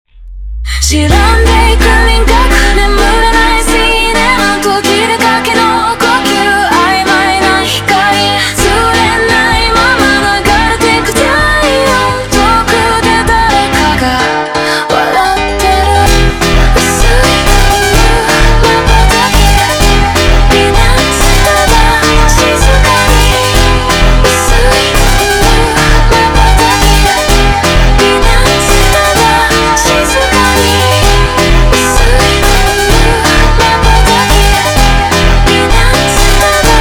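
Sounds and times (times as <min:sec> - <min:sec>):
slowed montagem music: 0:00.1 - 0:14.7, 0:15.4 - 0:36.7.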